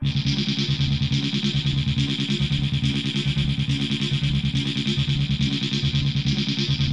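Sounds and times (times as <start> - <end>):
303 buzz at 140 bpm: 0.0 - 6.9.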